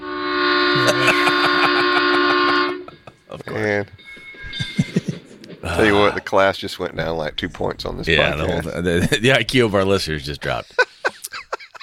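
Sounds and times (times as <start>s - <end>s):
loud train horn blast: 0.0s - 3.1s
laughter: 0.8s - 3.6s, 4.5s - 6.2s, 8.3s - 9.5s, 10.5s - 11.8s
speech: 5.8s - 10.8s.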